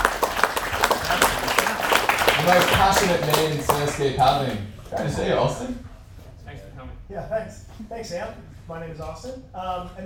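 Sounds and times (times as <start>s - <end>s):
small group clapping: 0.0s - 5.3s
speech: 2.5s - 5.9s, 7.1s - 10.0s.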